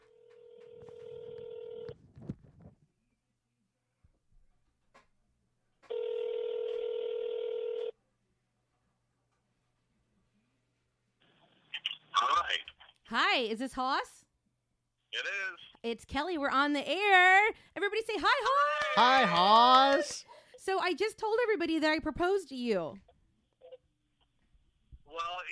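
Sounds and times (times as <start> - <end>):
phone ringing on speakerphone: 0.0 - 2.0, 5.9 - 7.9
speech: 13.2 - 14.2, 15.2 - 23.1.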